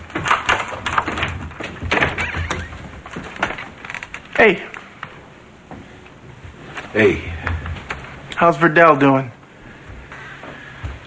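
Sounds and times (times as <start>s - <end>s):
door creaking open: 0.0s - 4.4s
speech: 4.4s - 4.7s, 6.9s - 7.3s, 8.4s - 9.4s.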